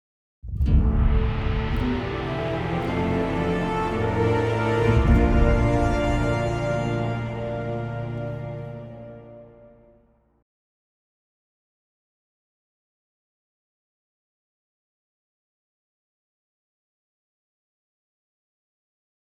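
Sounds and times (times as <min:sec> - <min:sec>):
positive exploration music: 0:00.7 - 0:10.0.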